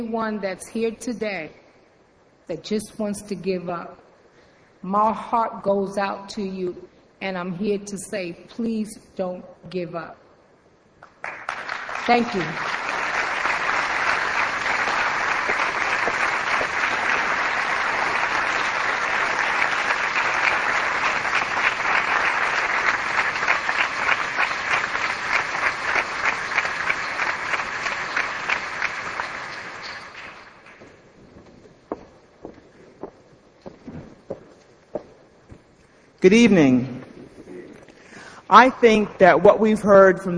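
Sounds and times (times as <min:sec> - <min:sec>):
speech: 0:00.0 - 0:01.6, 0:02.5 - 0:04.0, 0:04.8 - 0:10.2, 0:12.0 - 0:12.8, 0:36.2 - 0:37.0, 0:38.5 - 0:40.3
crowd clapping: 0:11.0 - 0:31.0.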